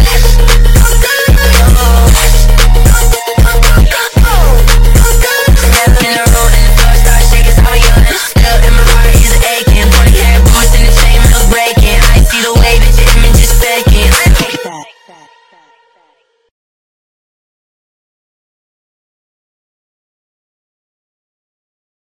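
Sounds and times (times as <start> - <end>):
sped up funk music: 0.0 - 14.8.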